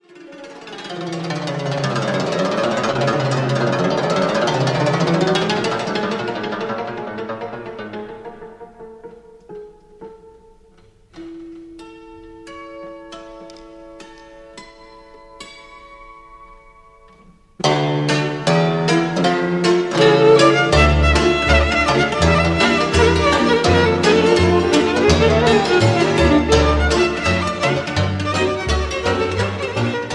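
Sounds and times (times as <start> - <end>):
Romanian lautari hora folk dance music: 0.6 - 12.3, 17.6 - 30.1.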